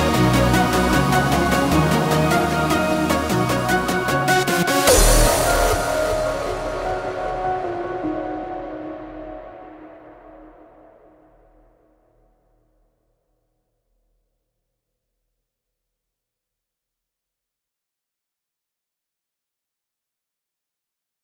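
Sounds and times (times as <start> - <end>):
hardstyle remix: 0.0 - 10.8.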